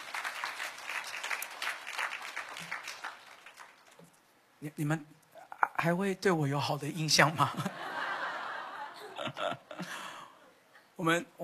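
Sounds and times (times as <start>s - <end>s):
audience clapping hands: 0.0s - 4.2s
speech: 4.6s - 5.2s, 5.8s - 7.8s, 11.0s - 11.4s
laughter: 7.5s - 10.2s.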